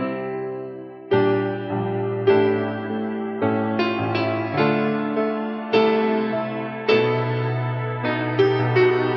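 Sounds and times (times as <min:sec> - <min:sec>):
sad piano loop: 0:00.0 - 0:09.1.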